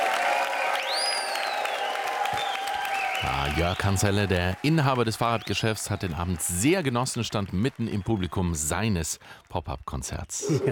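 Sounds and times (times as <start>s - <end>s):
crowd applause: 0.0s - 9.8s
shrill rising whistle: 0.7s - 3.5s
speech: 3.2s - 10.7s.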